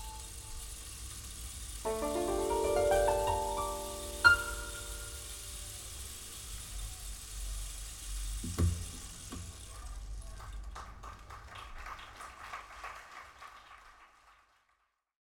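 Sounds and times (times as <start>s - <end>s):
rain: 0.5s - 10.3s.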